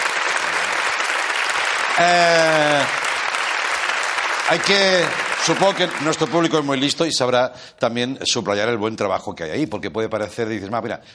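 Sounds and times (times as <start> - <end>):
studio audience applause: 0.0 - 7.0
speech: 2.0 - 3.0, 4.5 - 11.1.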